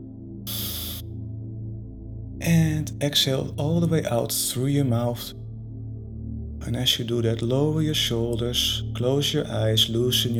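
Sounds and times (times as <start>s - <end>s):
deep inhale through the nose: 0.5s - 1.0s
low sustained tones: 0.5s - 1.0s
speech: 2.4s - 5.4s, 6.7s - 10.3s.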